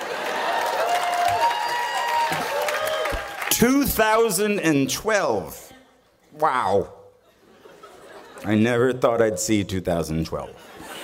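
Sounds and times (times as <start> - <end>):
audience clapping and cheering: 0.0 - 4.6
loud whoops and shouts: 0.2 - 3.4
speech: 3.6 - 5.6, 6.4 - 7.0, 8.4 - 10.8
laughter: 7.2 - 8.9, 10.6 - 11.0.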